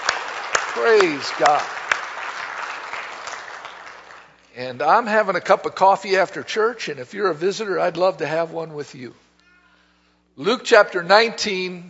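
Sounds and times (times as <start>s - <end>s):
church congregation applauding visitors: 0.0s - 5.6s
speech: 0.8s - 1.8s, 4.6s - 9.2s, 10.4s - 11.8s.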